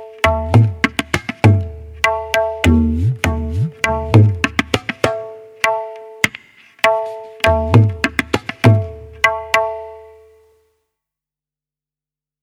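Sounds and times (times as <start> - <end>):
ek tal rhythm practice: 0.2 - 9.7.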